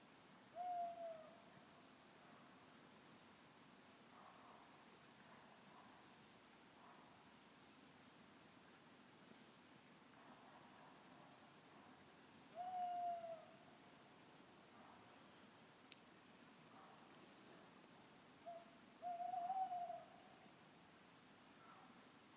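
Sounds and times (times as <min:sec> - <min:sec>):
owl: 0:00.5 - 0:01.5, 0:12.5 - 0:13.7, 0:18.5 - 0:20.4, 0:21.6 - 0:21.9.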